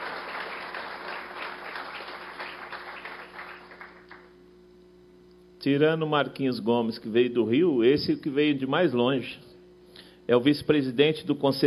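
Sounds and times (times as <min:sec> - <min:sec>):
audience applause: 0:00.0 - 0:04.3
speech: 0:05.6 - 0:09.5, 0:10.3 - 0:11.6.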